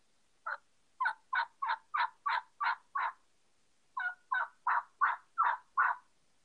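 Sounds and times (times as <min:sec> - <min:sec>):
turkey yelps on a yelper call deepened like a jake: 0:00.4 - 0:03.2, 0:04.0 - 0:06.1.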